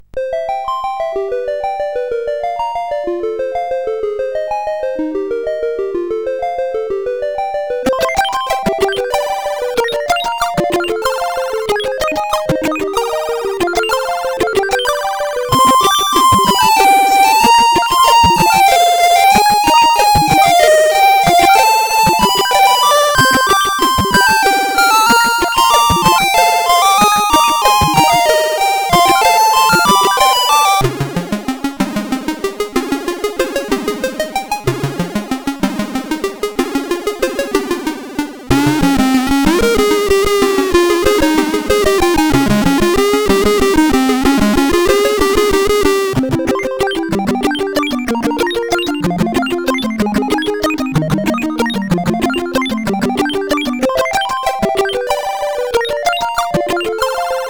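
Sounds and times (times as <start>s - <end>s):
medieval tune on SID chip: 0.0s - 57.4s.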